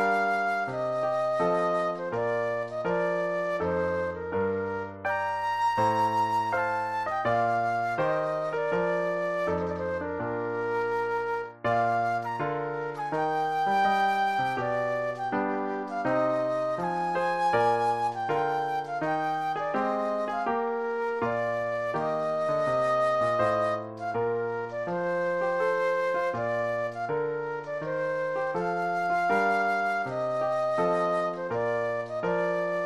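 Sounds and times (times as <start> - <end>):
classical air flute solo: 0.0 - 32.8.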